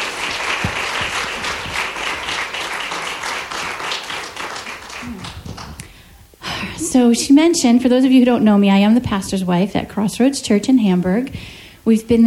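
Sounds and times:
audience round of applause: 0:00.0 - 0:05.9
speech: 0:06.9 - 0:12.2.

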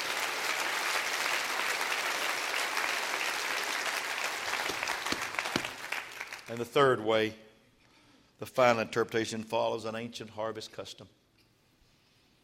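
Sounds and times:
audience clapping: 0:00.0 - 0:06.7
speech: 0:06.5 - 0:07.4, 0:08.4 - 0:11.2.

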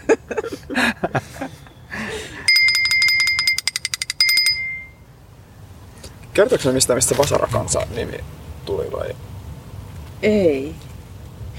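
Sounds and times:
speech: 0:01.1 - 0:01.3, 0:06.4 - 0:09.3, 0:10.2 - 0:10.8
homemade bell ringing: 0:02.4 - 0:05.0.

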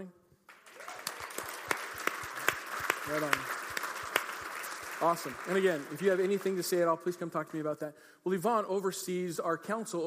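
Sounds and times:
speech: 0:00.0 - 0:00.2, 0:03.1 - 0:03.6, 0:05.0 - 0:10.0
audience applause: 0:00.5 - 0:06.9.

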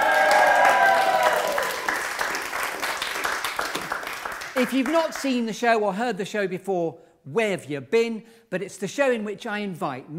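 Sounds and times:
loud whoops and yells: 0:00.0 - 0:01.9
theatre audience cheering and applauding: 0:00.0 - 0:04.9
speech: 0:04.6 - 0:10.1.

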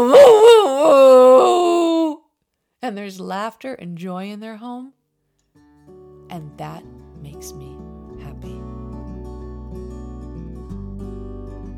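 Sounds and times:
dog howling as if singing: 0:00.0 - 0:02.2
speech: 0:02.9 - 0:05.0, 0:06.3 - 0:08.8.

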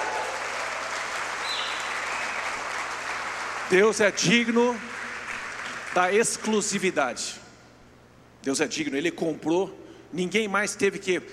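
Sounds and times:
audience applause: 0:00.0 - 0:06.5
speech: 0:03.7 - 0:04.9, 0:06.0 - 0:07.4, 0:08.4 - 0:11.3.

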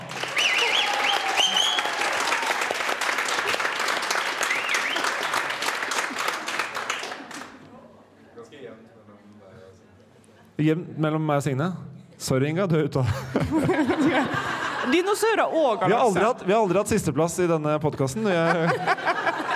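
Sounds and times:
live audience clapping: 0:00.0 - 0:07.7
speech: 0:10.6 - 0:19.2
laughter: 0:13.0 - 0:16.2, 0:18.1 - 0:19.5.

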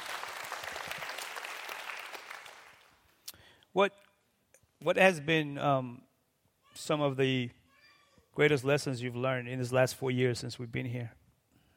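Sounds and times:
audience clapping: 0:00.0 - 0:03.1
speech: 0:03.8 - 0:04.1, 0:04.8 - 0:06.1, 0:06.8 - 0:07.6, 0:08.4 - 0:11.2.

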